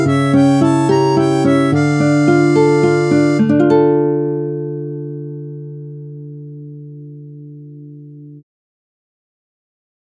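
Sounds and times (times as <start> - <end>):
harmonica: 0.0 - 4.2.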